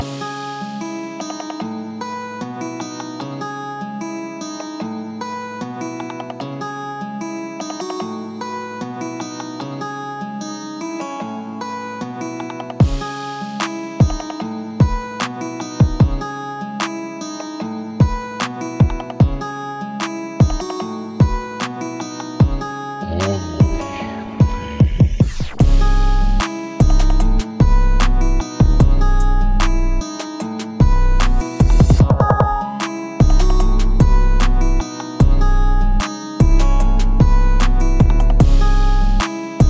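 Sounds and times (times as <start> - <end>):
harp beat: 12.8 - 16.2, 18.0 - 19.4, 20.4 - 21.7, 22.4 - 39.6.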